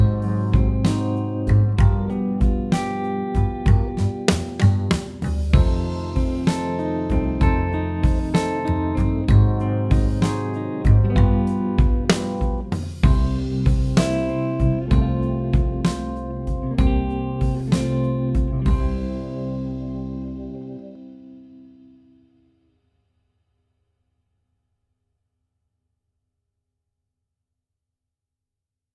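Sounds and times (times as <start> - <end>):
jazz backing track: 0.0 - 21.5.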